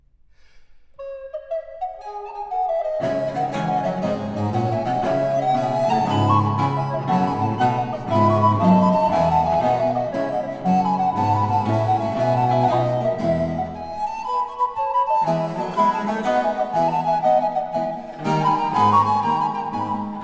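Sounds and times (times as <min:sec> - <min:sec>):
fast sonata movement in D minor for two recorders: 0:01.0 - 0:20.2.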